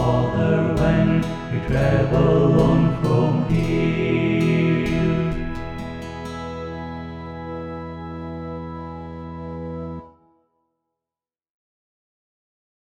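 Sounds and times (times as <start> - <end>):
SATB choir singing a welcome song: 0.0 - 6.9.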